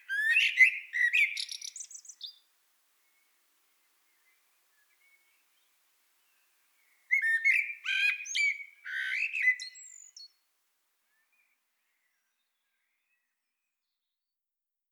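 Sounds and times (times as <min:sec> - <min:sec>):
Eurasian blackbird singing: 0:00.0 - 0:02.4, 0:07.1 - 0:10.4.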